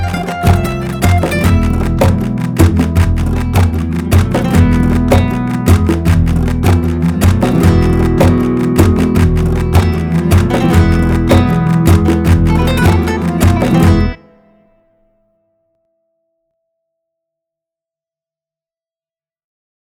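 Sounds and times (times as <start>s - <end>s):
Spanish classical guitar: 0.0s - 15.1s.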